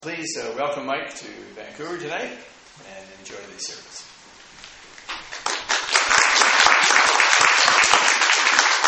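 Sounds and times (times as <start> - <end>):
speech: 0.0 - 4.2
audience applause: 5.0 - 8.8.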